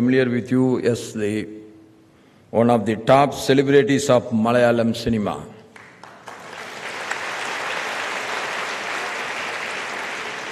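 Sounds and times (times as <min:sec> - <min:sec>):
speech: 0:00.0 - 0:01.6, 0:02.5 - 0:05.5
audience clapping: 0:05.7 - 0:10.4.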